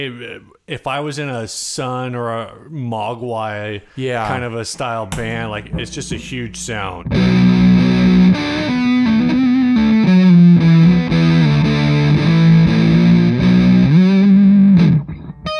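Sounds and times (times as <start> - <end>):
speech: 0.0 - 7.5
heavily fuzzed electric guitar riff through fuzz distortion pedal: 5.4 - 15.5.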